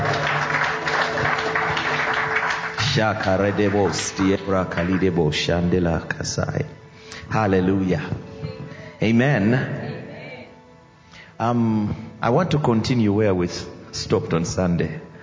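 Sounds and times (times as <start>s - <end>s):
audience clapping: 0.0s - 5.5s
speech: 3.0s - 8.3s, 9.0s - 9.8s, 11.4s - 15.1s.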